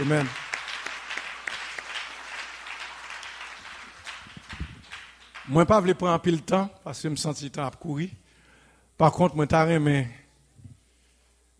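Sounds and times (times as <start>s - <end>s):
speech: 0.0s - 0.4s, 5.5s - 8.2s, 9.0s - 10.2s
audience applauding: 0.0s - 5.9s.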